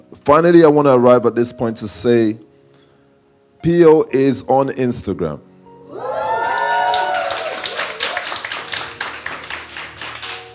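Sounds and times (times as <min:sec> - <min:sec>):
speech: 0:00.2 - 0:02.5, 0:03.6 - 0:06.2
cheers and whoops: 0:05.9 - 0:08.4
audience applause: 0:06.2 - 0:10.5.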